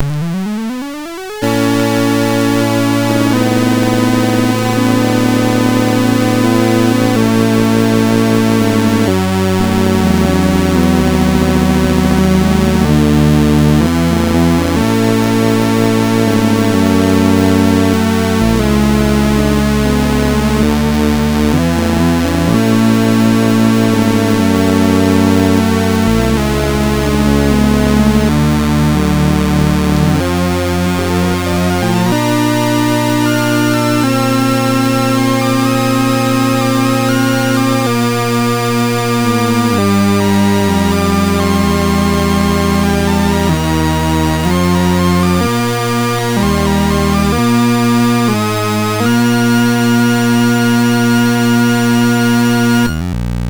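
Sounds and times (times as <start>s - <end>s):
MOS6581R2 chiptune music: 0.0s - 53.4s.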